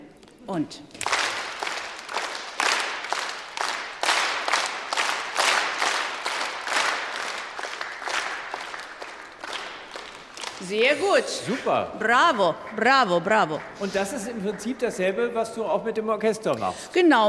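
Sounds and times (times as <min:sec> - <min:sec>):
speech: 0:00.5 - 0:01.0, 0:10.6 - 0:17.2
audience clapping in triple time, loud and soft: 0:00.9 - 0:11.0, 0:12.0 - 0:15.6.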